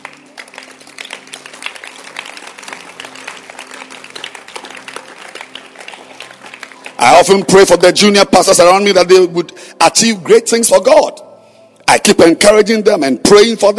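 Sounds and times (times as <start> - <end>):
audience clapping: 0.0 - 7.8
speech: 7.1 - 11.2, 11.9 - 13.7.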